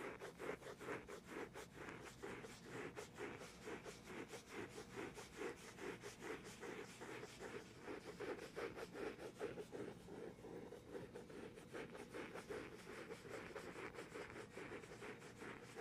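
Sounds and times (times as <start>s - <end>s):
ASMR gentle tapping and scratching: 0.0s - 15.8s.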